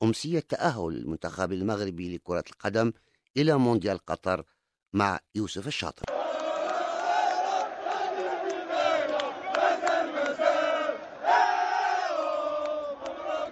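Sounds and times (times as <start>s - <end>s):
speech: 0.0s - 6.2s
crowd of male voices chanting and shouting in stadium: 6.0s - 13.5s.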